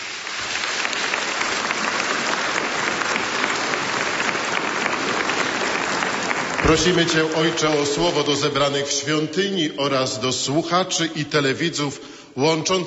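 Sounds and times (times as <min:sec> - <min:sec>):
audience applause: 0:00.0 - 0:08.6
speech: 0:06.7 - 0:12.8.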